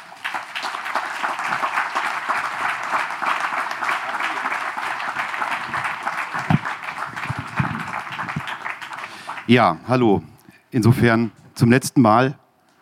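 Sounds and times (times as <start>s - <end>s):
audience applause: 0.0s - 9.8s
speech: 9.5s - 12.4s.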